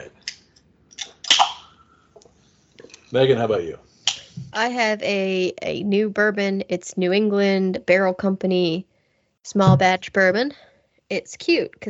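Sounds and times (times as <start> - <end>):
Diet Coke soda can cracking open: 1.0 - 1.6
speech: 3.1 - 11.8.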